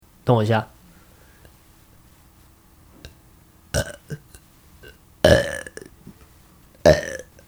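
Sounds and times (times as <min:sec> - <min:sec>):
speech: 0:00.3 - 0:00.7
loud forced burps: 0:03.7 - 0:06.2, 0:06.8 - 0:07.4
small throat noises: 0:03.8 - 0:07.4.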